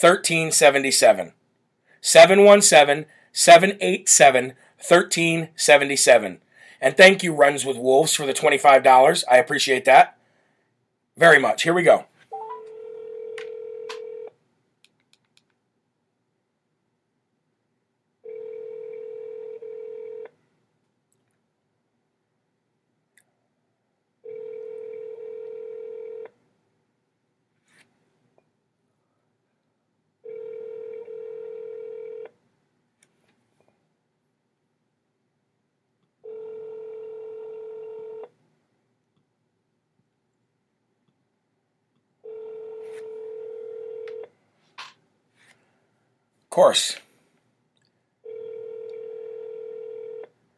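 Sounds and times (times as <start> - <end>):
speech: 0.0 - 1.4, 2.0 - 10.2, 11.2 - 12.1, 46.6 - 47.0
telephone ringback tone: 12.4 - 13.0
touch-tone dialing beeps: 12.4 - 14.2.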